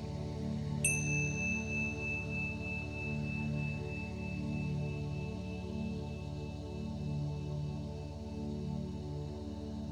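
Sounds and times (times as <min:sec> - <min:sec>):
steady low humming drone: 0:00.0 - 0:09.8
meditation chime ringing: 0:00.8 - 0:07.2.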